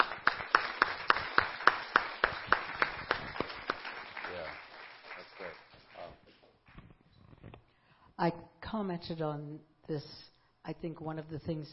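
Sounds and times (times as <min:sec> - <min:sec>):
audience applause: 0:00.0 - 0:06.2
speech: 0:08.2 - 0:11.7.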